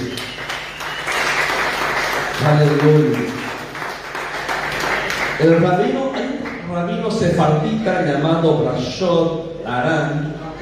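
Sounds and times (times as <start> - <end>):
loud applause: 0.0 - 6.6
speech: 2.4 - 3.5, 5.4 - 6.2, 6.8 - 10.4.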